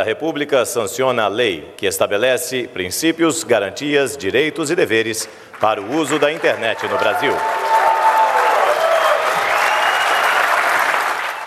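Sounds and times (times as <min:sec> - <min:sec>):
speech: 0:00.0 - 0:07.7
large crowd applause: 0:05.5 - 0:11.4.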